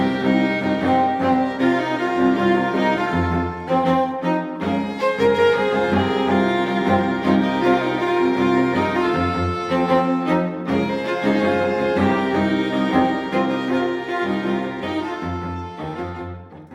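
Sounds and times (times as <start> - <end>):
happy string quartet: 0.0 - 16.6.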